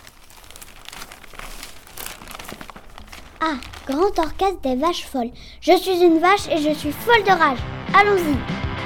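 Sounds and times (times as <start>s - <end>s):
newspaper rustling: 0.0s - 4.6s
speech: 3.4s - 8.6s.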